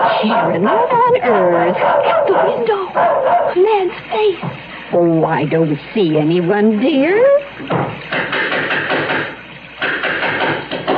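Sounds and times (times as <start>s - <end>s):
speech: 0.2s - 8.3s
knocking at the door: 7.7s - 10.9s.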